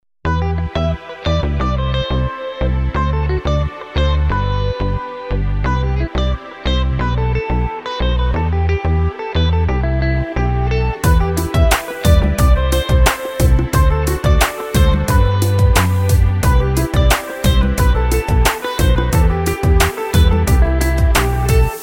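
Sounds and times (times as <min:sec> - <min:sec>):
melody: 0:00.6 - 0:21.8.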